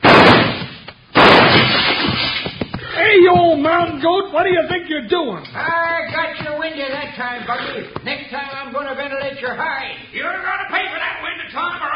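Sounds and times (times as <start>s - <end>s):
gunshots: 0.0s - 2.6s
speech: 3.6s - 11.9s.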